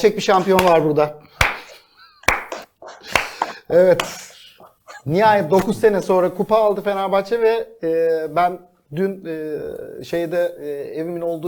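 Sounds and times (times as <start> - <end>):
speech: 0.0 - 1.2, 3.7 - 4.3, 5.0 - 11.4
slow sharp hand claps: 0.4 - 4.2.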